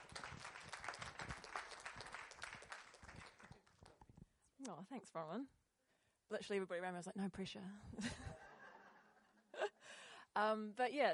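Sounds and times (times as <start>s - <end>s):
audience clapping: 0.0s - 4.1s
speech: 4.7s - 5.6s, 6.3s - 8.3s, 10.4s - 11.1s.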